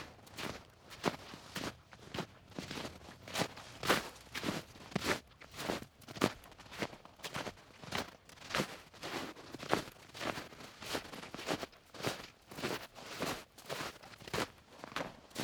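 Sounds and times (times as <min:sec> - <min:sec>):
boots walking in snow at Griffey Lake, Bloomington, Indiana: 0:00.0 - 0:15.4.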